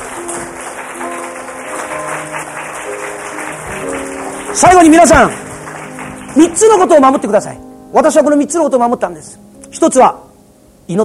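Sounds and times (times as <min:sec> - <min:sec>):
audience applause: 0:00.0 - 0:07.3
speech: 0:04.6 - 0:05.4, 0:06.4 - 0:10.2, 0:10.9 - 0:11.0.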